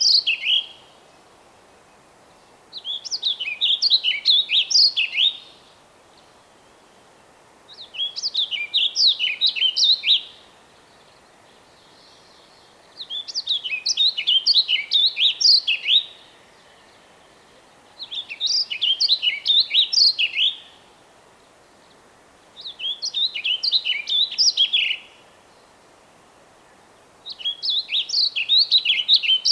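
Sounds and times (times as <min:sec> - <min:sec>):
songbird singing slurred whistles: 0:00.0 - 0:00.8, 0:02.7 - 0:05.6, 0:07.7 - 0:10.4, 0:11.8 - 0:17.1, 0:18.0 - 0:20.8, 0:22.6 - 0:25.2, 0:27.2 - 0:29.5.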